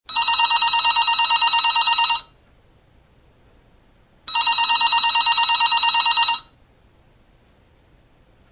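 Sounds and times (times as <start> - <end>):
office telephone ringing: 0.1 - 2.4, 4.3 - 6.6.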